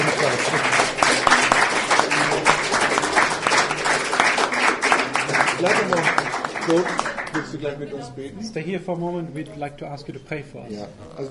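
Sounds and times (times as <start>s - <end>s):
audience applause at a German-English church gathering: 0.0s - 7.9s
speech: 6.7s - 11.2s.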